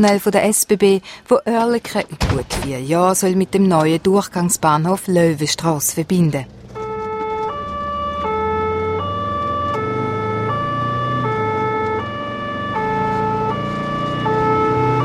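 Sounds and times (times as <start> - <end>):
speech: 0.0 - 6.6
road traffic rumble: 2.0 - 15.0
two-tone emergency vehicle siren: 6.7 - 15.0.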